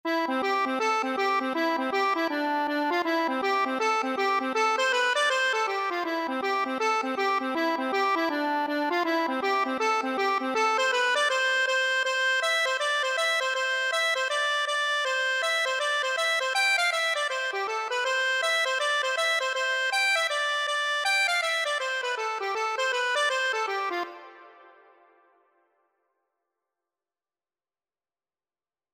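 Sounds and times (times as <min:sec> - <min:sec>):
accordion: 0:00.1 - 0:25.2.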